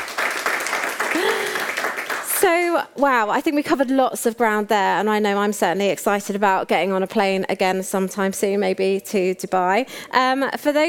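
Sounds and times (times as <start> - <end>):
audience applause: 0.0 - 2.5
speech: 2.4 - 10.8.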